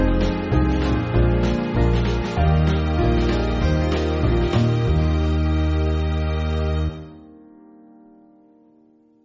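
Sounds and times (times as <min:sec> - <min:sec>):
church band backing music: 0:00.0 - 0:07.1.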